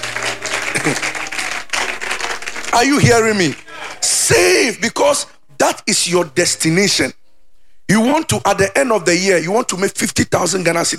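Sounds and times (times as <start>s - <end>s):
audience clapping hands: 0.0s - 4.1s
speech: 2.8s - 3.6s, 4.3s - 7.2s, 7.9s - 10.9s.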